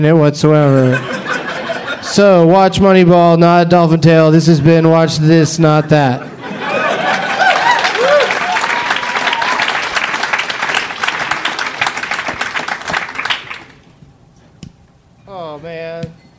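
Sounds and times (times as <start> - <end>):
speech: 0.0 - 1.3, 2.0 - 6.3
laughter: 0.6 - 2.5, 5.4 - 13.3
applause: 7.0 - 13.8.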